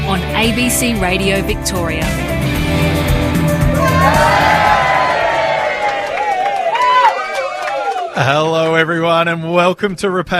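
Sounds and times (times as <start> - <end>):
speech: 0.1 - 3.1, 8.2 - 10.3
crowd cheering at outdoor event at Woods Farming and Heritage Museum: 3.6 - 8.9.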